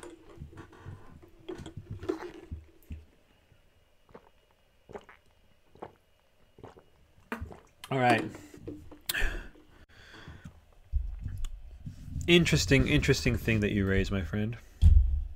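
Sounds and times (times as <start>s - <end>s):
drinking a sip of water: 0.0s - 3.1s, 4.1s - 9.6s
speech: 7.9s - 8.4s, 12.3s - 14.7s.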